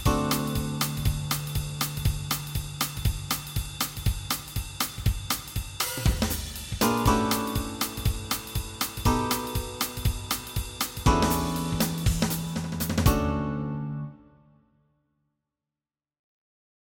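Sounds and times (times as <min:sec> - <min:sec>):
walking bass backing track: 0:00.1 - 0:04.5, 0:06.1 - 0:14.0.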